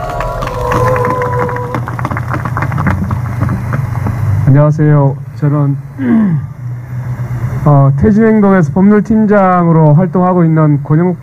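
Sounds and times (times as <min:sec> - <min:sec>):
large crowd applauding: 0:00.0 - 0:04.4
low rumbling hum: 0:00.0 - 0:11.2
speech: 0:04.5 - 0:06.5, 0:07.6 - 0:11.2.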